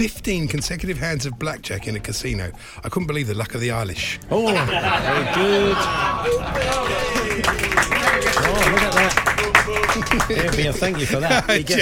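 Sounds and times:
speech: 0:00.0 - 0:07.8, 0:08.6 - 0:11.7
people talking and laughing: 0:03.9 - 0:11.7
audience applause: 0:04.7 - 0:11.7.

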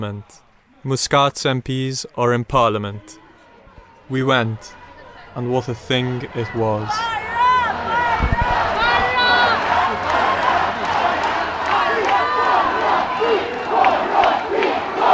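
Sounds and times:
speech: 0:00.0 - 0:03.2, 0:04.1 - 0:07.2
angry crowd shouting at departing MPs: 0:03.0 - 0:15.1.

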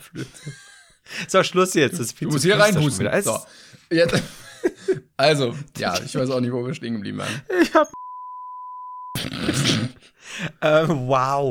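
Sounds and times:
laughter: 0:00.0 - 0:01.0
speech: 0:00.0 - 0:04.4, 0:05.2 - 0:08.0, 0:09.2 - 0:11.4
electronic censor bleep: 0:08.0 - 0:09.2.

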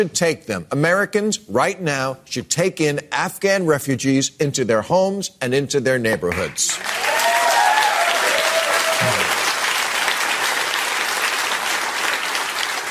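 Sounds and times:
speech: 0:00.0 - 0:07.3
audience applause: 0:06.7 - 0:12.8.

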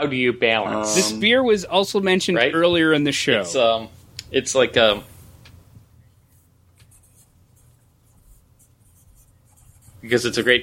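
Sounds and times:
speech: 0:00.0 - 0:05.1, 0:10.1 - 0:10.6
quiet noise: 0:00.0 - 0:10.6
pen scratching as someone writes something down: 0:06.8 - 0:10.6.

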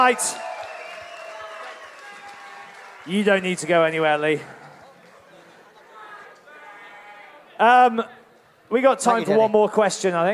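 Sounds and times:
speech: 0:00.0 - 0:00.5, 0:03.1 - 0:04.6, 0:07.6 - 0:10.3
audience applause: 0:00.0 - 0:06.0.

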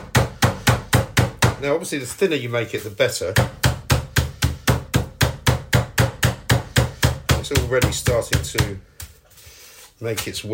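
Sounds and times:
chicken being pounded flat: 0:00.0 - 0:01.7, 0:03.4 - 0:09.2
speech: 0:01.6 - 0:03.6, 0:07.5 - 0:08.9, 0:10.0 - 0:10.5.

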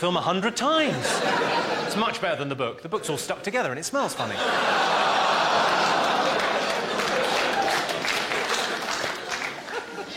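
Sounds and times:
speech: 0:00.0 - 0:06.0
laughter: 0:00.8 - 0:02.4, 0:04.2 - 0:10.1
audience applause: 0:04.5 - 0:10.1.

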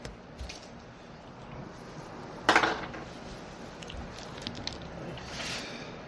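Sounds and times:
low hum: 0:00.0 - 0:06.0
d20 die clattering onto a tabletop: 0:02.5 - 0:03.0.

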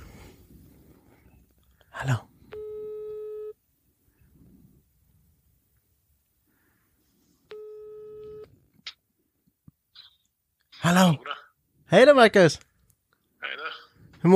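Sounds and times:
speech: 0:02.0 - 0:02.3, 0:11.9 - 0:12.7
telephone ringing tone while calling someone: 0:02.5 - 0:03.6, 0:07.5 - 0:08.5.

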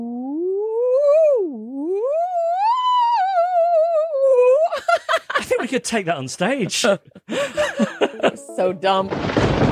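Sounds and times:
voice imitating a theremin with a sliding hum: 0:00.0 - 0:04.8
laughter: 0:04.7 - 0:08.5
speech: 0:05.7 - 0:07.8, 0:08.6 - 0:09.6.

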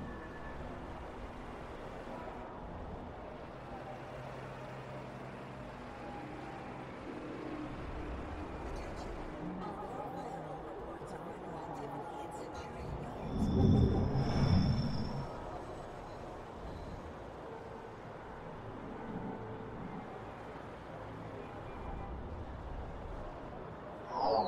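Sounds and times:
futuristic city traffic rumble: 0:00.6 - 0:24.2
whooshing pass with high whine: 0:12.7 - 0:15.8.

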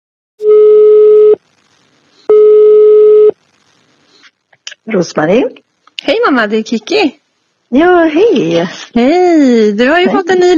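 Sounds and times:
telephone ringing tone: 0:00.4 - 0:01.4, 0:02.3 - 0:03.3
speech: 0:04.9 - 0:10.5.

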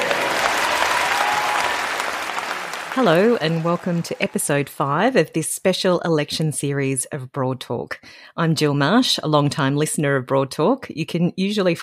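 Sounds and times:
crowd applauding at an Australian election campaign: 0:00.0 - 0:05.1
speech: 0:03.0 - 0:11.8.

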